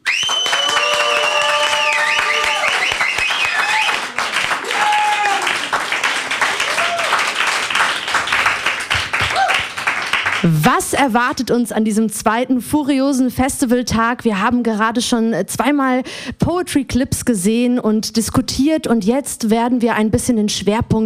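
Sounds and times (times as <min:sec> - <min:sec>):
audience applause: 0:00.0 - 0:10.6
speech: 0:10.9 - 0:21.0.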